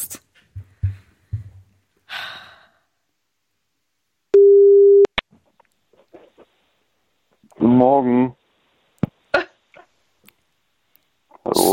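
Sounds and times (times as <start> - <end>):
telephone ringing tone: 4.4 - 5.1
speech: 7.8 - 8.4.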